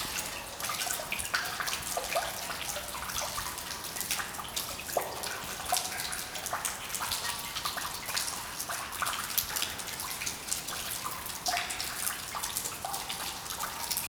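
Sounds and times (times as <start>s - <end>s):
water dripping: 0.0s - 14.0s.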